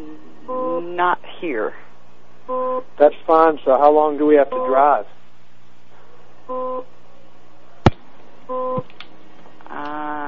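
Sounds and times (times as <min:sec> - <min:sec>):
speech: 0:00.0 - 0:01.9, 0:02.5 - 0:05.2, 0:06.5 - 0:06.9, 0:08.5 - 0:08.9
electronic beeps in a car: 0:00.5 - 0:00.9, 0:02.5 - 0:02.8, 0:04.5 - 0:04.9, 0:06.5 - 0:06.9, 0:08.5 - 0:08.9.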